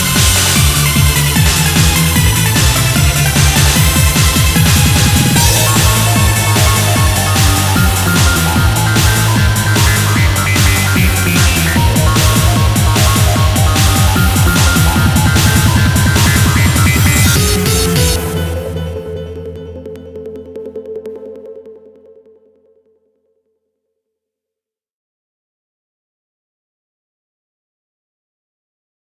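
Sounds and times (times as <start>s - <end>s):
photoelectron noise mix: 0.0s - 19.2s.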